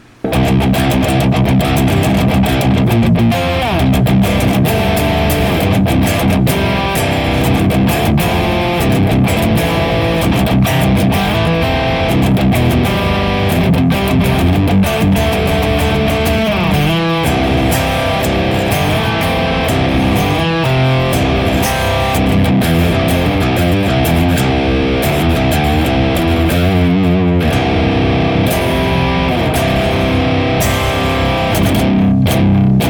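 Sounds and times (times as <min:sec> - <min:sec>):
electric guitar through Rat pedal, 6L6 power tubes and Uberschall 75-412 cabinet IR: 0:00.0 - 0:32.8.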